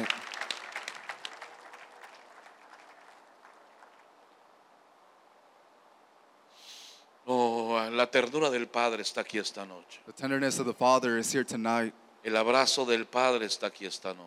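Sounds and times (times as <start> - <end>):
congregation applause at a Christian worship service: 0.0 - 4.3
soft rush of noise: 1.9 - 14.2
speech: 7.9 - 14.2.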